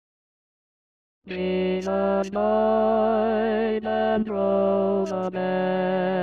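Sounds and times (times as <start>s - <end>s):
choir singing tutti: 1.3s - 6.0s.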